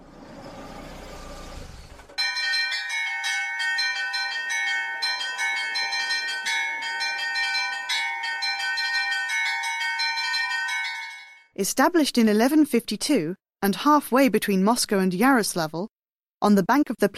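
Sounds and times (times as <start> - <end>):
Rostov church bell chimes ringing: 2.2 - 11.5
speech: 11.6 - 17.1.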